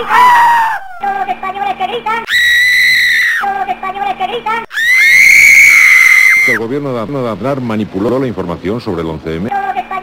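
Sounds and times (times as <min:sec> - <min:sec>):
crowd of people shouting and screaming: 0:00.0 - 0:01.3, 0:02.2 - 0:03.5, 0:04.7 - 0:06.6
speech: 0:04.3 - 0:04.8, 0:06.5 - 0:09.6.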